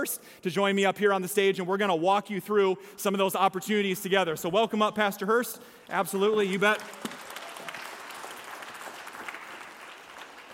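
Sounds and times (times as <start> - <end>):
speech: 0.0 - 7.2
audience applause welcoming a pastor onto a stage: 6.1 - 10.5.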